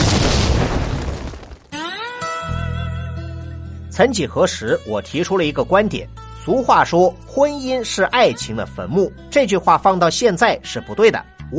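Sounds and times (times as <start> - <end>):
explosion sound effect: 0.0 - 1.8
speech: 4.0 - 11.5.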